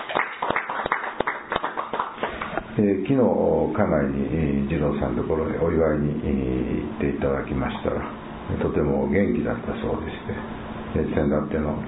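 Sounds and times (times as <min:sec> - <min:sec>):
audience applause: 0:00.0 - 0:02.6
speech: 0:02.8 - 0:11.8.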